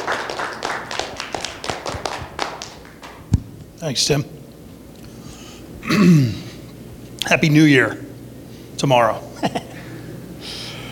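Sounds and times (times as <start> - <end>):
audience applause: 0.0 - 3.2
speech: 3.8 - 4.4, 5.8 - 6.4, 7.3 - 8.0, 8.8 - 9.6.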